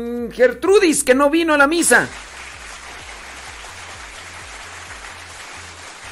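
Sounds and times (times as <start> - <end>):
speech: 0.0 - 2.3
audience applause: 2.1 - 6.1.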